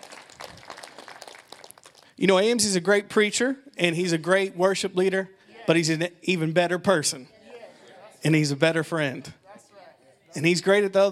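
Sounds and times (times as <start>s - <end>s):
audience applause: 0.0s - 2.2s
speech: 2.2s - 7.4s, 8.2s - 9.4s, 10.3s - 11.1s.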